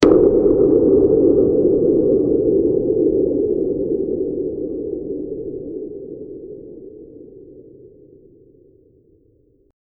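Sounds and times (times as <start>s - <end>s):
black hole sound: 0.0s - 9.2s.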